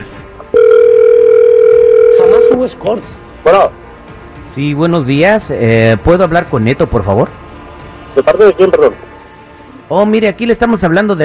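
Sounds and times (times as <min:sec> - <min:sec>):
telephone ringing: 0:00.5 - 0:02.6
speech: 0:02.6 - 0:03.8, 0:04.6 - 0:07.4, 0:08.2 - 0:09.1, 0:09.9 - 0:11.2.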